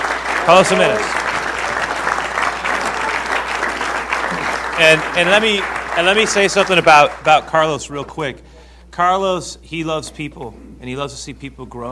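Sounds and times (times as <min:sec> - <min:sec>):
audience applause greeting a speaker at a church gathering: 0:00.0 - 0:08.1
speech: 0:00.5 - 0:01.2, 0:04.8 - 0:11.9.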